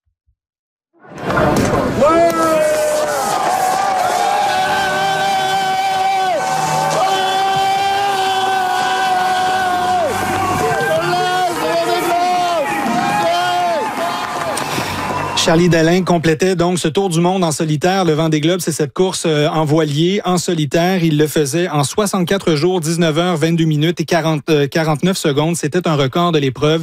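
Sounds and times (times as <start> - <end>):
crowd roar at Charlie Dalin's Vendée Globe finish at Les Sables d'Olonne: 1.0 - 16.2
speech: 15.5 - 26.8.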